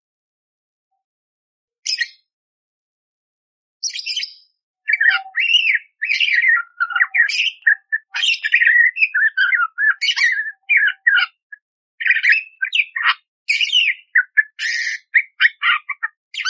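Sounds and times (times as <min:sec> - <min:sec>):
Eurasian tree sparrow fighting song chirps: 0:01.9 - 0:02.3, 0:03.8 - 0:16.4.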